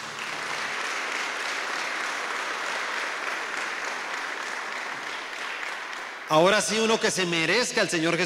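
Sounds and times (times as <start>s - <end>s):
audience applauding: 0.0s - 7.0s
speech: 6.3s - 8.2s.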